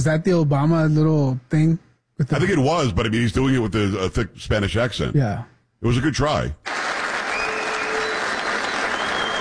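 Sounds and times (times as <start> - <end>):
speech: 0.0 - 7.0
audience clapping: 6.6 - 9.4.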